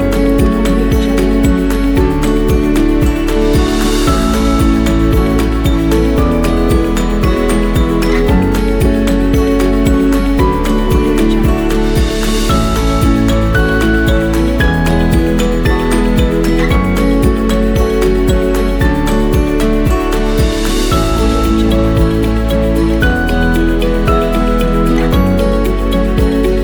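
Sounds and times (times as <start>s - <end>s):
acoustic guitar playing: 0.0s - 26.6s.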